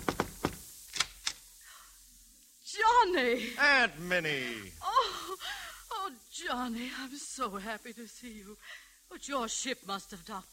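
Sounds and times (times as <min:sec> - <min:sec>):
knocking on a door at a Paris residence: 0:00.0 - 0:00.6
speech: 0:03.0 - 0:05.2, 0:06.4 - 0:10.5.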